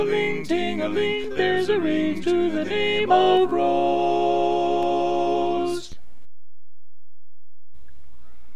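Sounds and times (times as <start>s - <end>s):
tenor singing: 0.0s - 6.0s.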